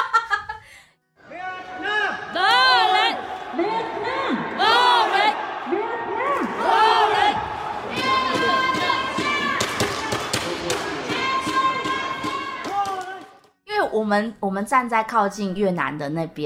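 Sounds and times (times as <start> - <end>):
stadium fans cheering and chanting at championship match: 1.2 - 13.4
speech: 14.1 - 16.4.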